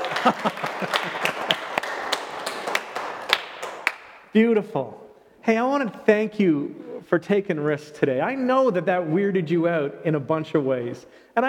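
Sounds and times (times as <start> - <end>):
laughter: 0.0 - 2.1
church audience applause: 0.0 - 4.0
speech: 0.2 - 1.2, 4.4 - 11.4.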